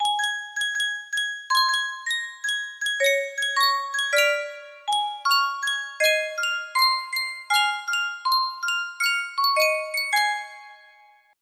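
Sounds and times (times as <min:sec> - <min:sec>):
Sankyo music box melody: 0:00.0 - 0:11.3.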